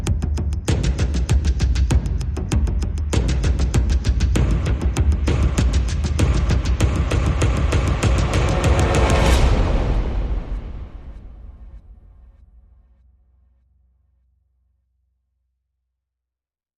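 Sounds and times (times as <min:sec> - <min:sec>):
drums: 0:00.0 - 0:12.4
bass: 0:00.0 - 0:15.7.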